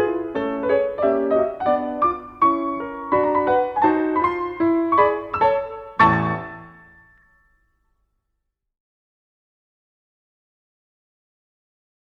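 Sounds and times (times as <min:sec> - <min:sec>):
piano pieces: 0:00.0 - 0:07.6.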